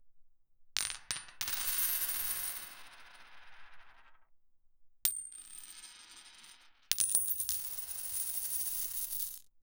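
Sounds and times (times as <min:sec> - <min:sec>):
coins falling onto the floor: 0:00.8 - 0:02.9, 0:05.1 - 0:09.5.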